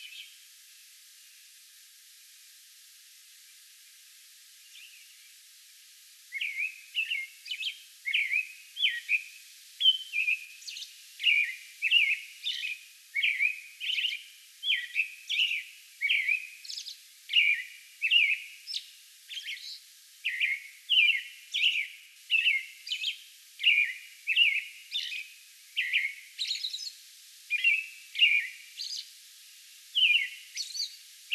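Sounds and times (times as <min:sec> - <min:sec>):
American robin singing: 0:06.3 - 0:29.1, 0:29.9 - 0:31.3.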